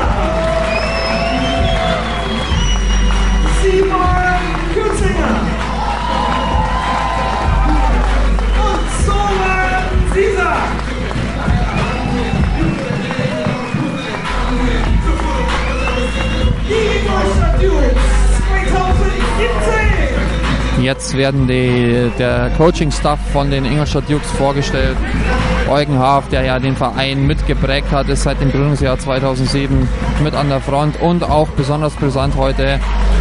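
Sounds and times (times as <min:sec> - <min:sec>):
stadium spectators applause: 0:00.0 - 0:27.2
stadium spectators roaring and cheering: 0:00.0 - 0:33.1
speech: 0:20.9 - 0:33.1.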